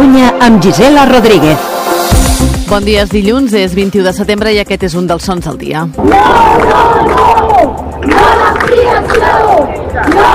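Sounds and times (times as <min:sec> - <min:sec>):
speech: 0:00.4 - 0:01.7, 0:02.7 - 0:10.3
protest crowd chanting in the street against El Prat airport expansion: 0:06.0 - 0:10.3.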